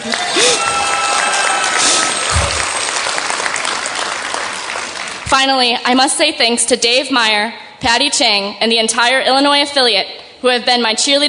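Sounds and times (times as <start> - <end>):
speech: 0.0 - 0.4, 5.3 - 11.2
audience applause: 0.0 - 5.3.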